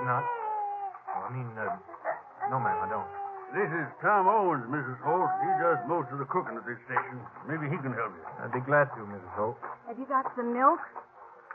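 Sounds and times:
baby crying at a frontier station: 0:00.0 - 0:06.6
speech: 0:00.1 - 0:00.4, 0:01.3 - 0:01.9, 0:02.5 - 0:11.1
laughter: 0:03.6 - 0:09.5.

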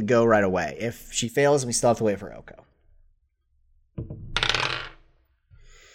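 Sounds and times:
speech: 0:00.0 - 0:02.6
dice rolled across a hard surface: 0:04.3 - 0:05.1.

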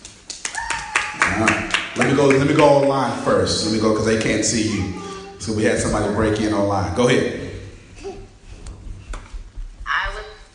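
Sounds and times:
people clapping: 0:00.0 - 0:03.2
speech: 0:01.4 - 0:07.4.

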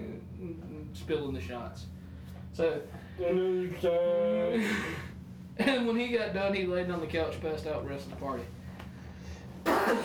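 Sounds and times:
speech: 0:00.0 - 0:08.6
low quiet hum: 0:00.0 - 0:10.0
person sneezing: 0:09.6 - 0:10.0.

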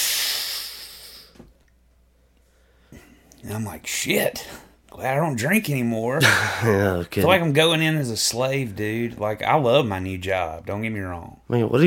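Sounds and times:
person imitating the hiss of a body scanner: 0:00.0 - 0:01.4
speech: 0:03.4 - 0:11.8.

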